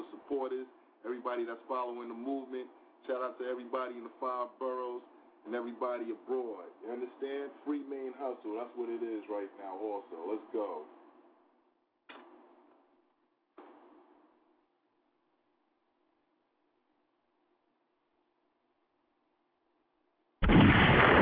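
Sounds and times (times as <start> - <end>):
speech: 0.4 - 11.0
gunshots during a live stream: 20.4 - 21.2.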